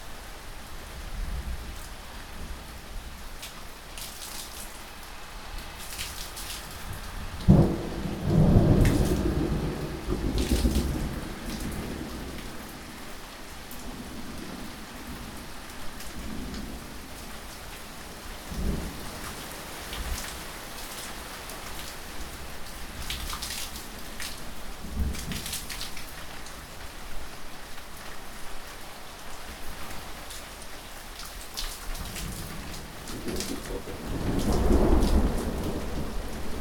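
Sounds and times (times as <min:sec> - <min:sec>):
rain: 0:00.0 - 0:36.5.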